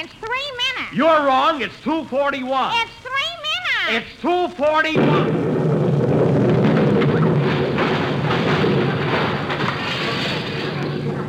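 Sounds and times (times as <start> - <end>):
speech: 0.9 - 3.0, 3.9 - 5.4
time bomb exploding: 4.9 - 11.2.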